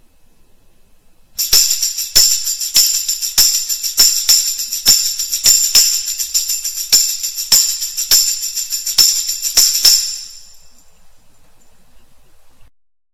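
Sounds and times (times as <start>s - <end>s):
tambourine: 1.4s - 10.9s.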